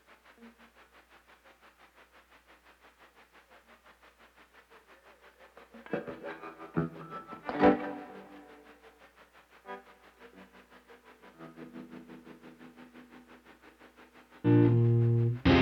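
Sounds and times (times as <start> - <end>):
ambient guitar: 5.9 - 8.5, 14.4 - 15.6.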